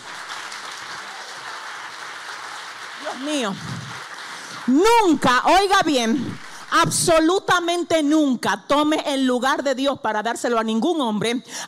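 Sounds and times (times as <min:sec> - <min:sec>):
audience applause: 0:00.0 - 0:07.0
speech: 0:03.1 - 0:04.0, 0:04.7 - 0:11.6.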